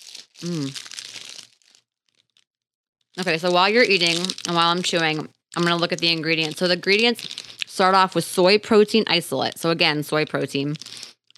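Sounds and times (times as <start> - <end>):
protein bar wrapper crinkling: 0.0 - 2.5, 3.2 - 8.5, 10.5 - 11.3
speech: 0.4 - 0.9, 3.2 - 11.0.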